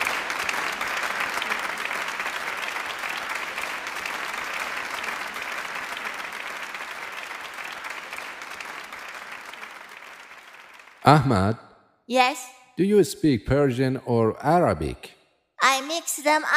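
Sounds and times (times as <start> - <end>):
audience applauding warmly: 0.0 - 11.6
speech: 11.1 - 15.2, 15.8 - 16.5.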